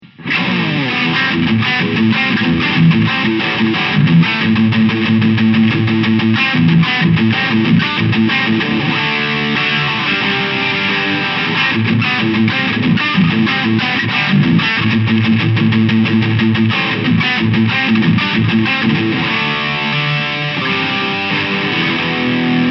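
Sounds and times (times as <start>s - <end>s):
high gain distortion: 0.0s - 22.6s.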